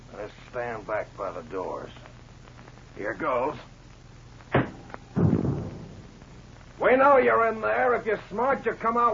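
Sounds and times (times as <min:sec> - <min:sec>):
speech: 0:00.5 - 0:02.1, 0:03.0 - 0:03.7, 0:06.8 - 0:09.1
sharp knock: 0:04.5 - 0:06.1
heavier thump of a tear gas bomb: 0:04.5 - 0:06.3.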